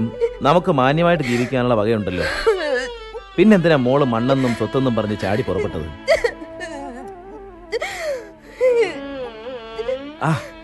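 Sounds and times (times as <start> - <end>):
speech: 0.0 - 2.5, 3.4 - 6.2, 10.2 - 10.5
person crying and sobbing in a Malayalam drama: 0.0 - 3.3, 4.0 - 10.6.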